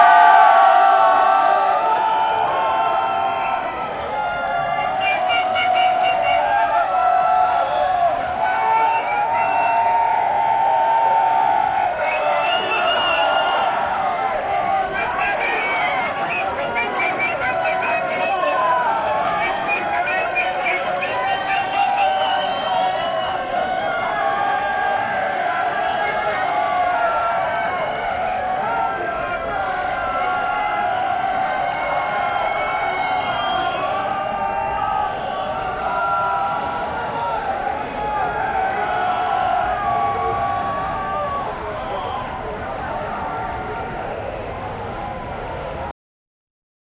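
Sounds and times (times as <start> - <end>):
festival crowd cheering: 0.0 - 45.9.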